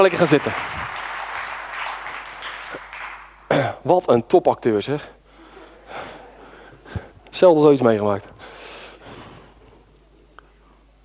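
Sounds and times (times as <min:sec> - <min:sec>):
speech: 0:00.0 - 0:00.9, 0:03.8 - 0:05.2, 0:07.4 - 0:08.3
audience applause for actors after a stage performance: 0:00.0 - 0:03.5.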